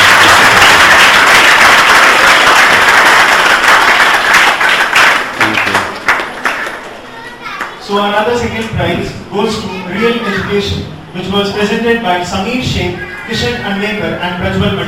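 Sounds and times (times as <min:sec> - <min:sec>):
audience applause: 0:00.0 - 0:07.0
speech: 0:08.0 - 0:14.8.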